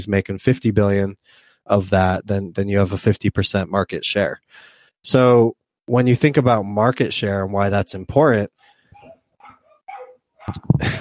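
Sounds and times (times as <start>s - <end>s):
speech: 0.0s - 8.6s, 10.5s - 11.0s
dogs barking: 8.6s - 11.0s.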